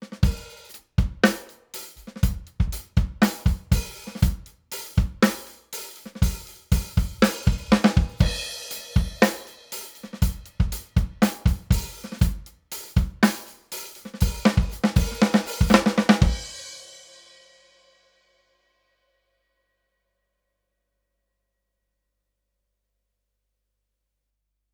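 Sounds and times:
drums: 0.0 - 18.1.

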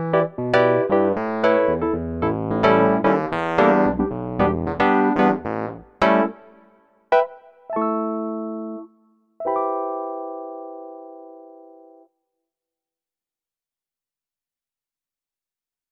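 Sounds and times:
Wurlitzer electric piano: 0.0 - 12.1.

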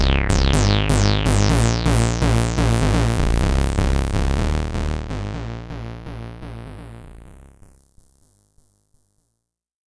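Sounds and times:
notch filter sweep: 0.0 - 7.8.

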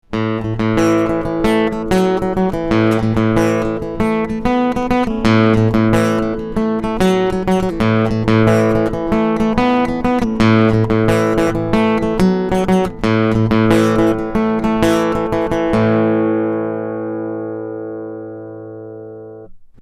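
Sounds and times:
guitar: 0.0 - 19.8.

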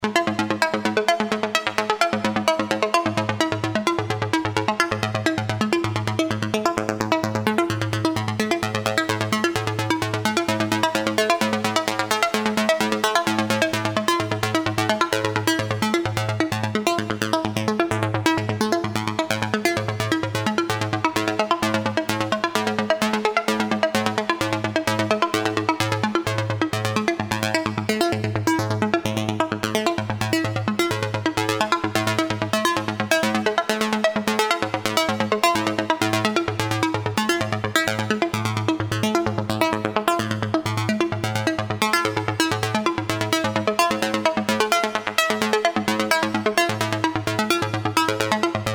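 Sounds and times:
filter CV modulated synth: 0.0 - 48.7.

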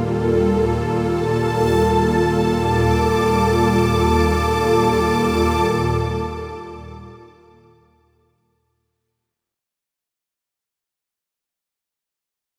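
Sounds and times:
Yamaha Montage M warm soft synth strings: 0.0 - 7.6.

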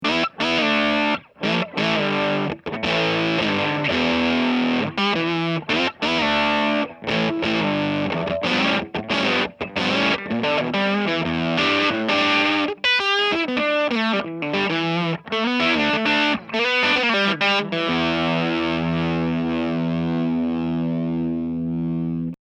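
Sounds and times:
guitar through an MXR gain pedal on a Variac at 15 V: 0.0 - 22.4.

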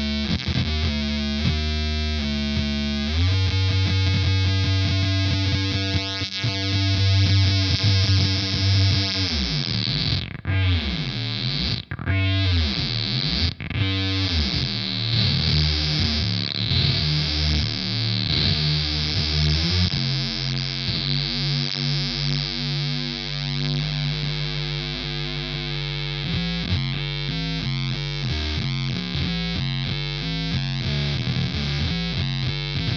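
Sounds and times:
monophonic synthesizer: 0.0 - 32.9.

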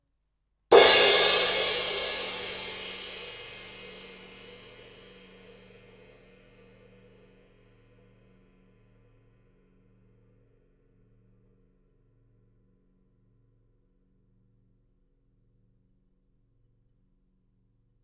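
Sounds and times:
cymbal: 0.7 - 7.9.

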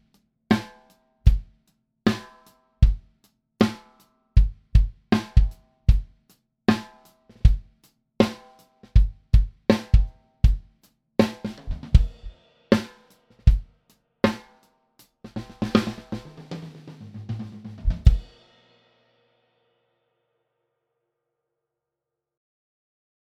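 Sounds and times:
snare drum: 2.1 - 2.4, 3.6 - 4.0, 5.2 - 5.6, 6.7 - 7.5, 8.2 - 10.1, 11.2 - 13.6, 15.3 - 18.2
kick drum: 4.4 - 6.1, 9.0 - 10.6.

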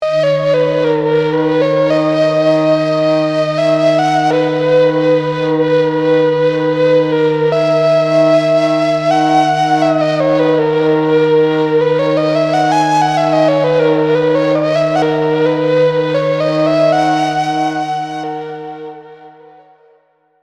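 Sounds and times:
flute: 0.0 - 20.2.

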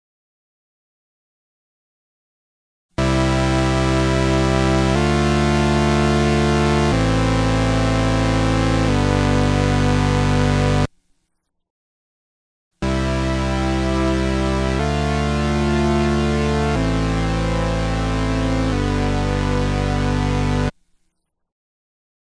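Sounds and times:
Boss DC-2W chorus guitar effect, bright: 3.0 - 10.9, 12.8 - 20.7.

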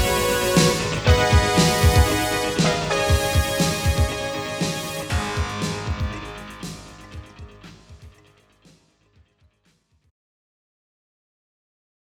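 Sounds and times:
synthesizer film music: 0.0 - 9.1.

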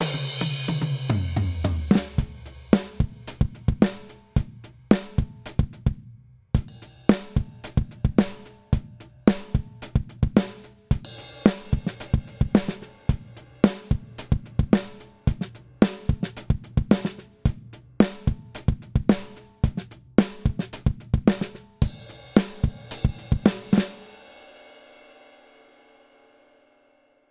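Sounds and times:
drums: 0.0 - 27.0.

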